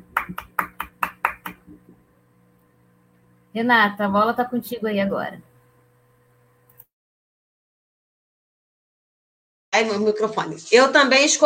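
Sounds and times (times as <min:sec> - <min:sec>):
people applauding: 0:00.0 - 0:01.7
speech: 0:03.6 - 0:05.5, 0:09.8 - 0:11.4.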